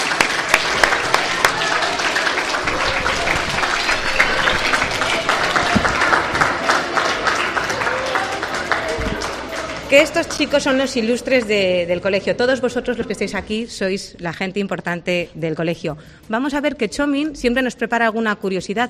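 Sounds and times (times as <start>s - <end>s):
audience applause for children: 0.0s - 10.8s
faint crowd murmur: 0.0s - 13.5s
speech: 9.9s - 18.8s.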